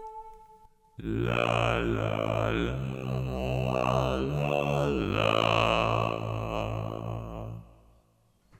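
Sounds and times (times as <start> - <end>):
voice with TC Helicon Perform VE morph shift effect: 1.0 - 7.8.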